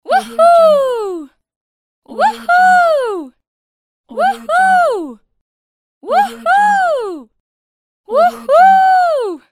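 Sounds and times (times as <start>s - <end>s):
woman cheering: 0.1s - 1.3s, 2.2s - 3.3s, 4.2s - 5.1s, 6.1s - 7.3s, 8.1s - 9.4s.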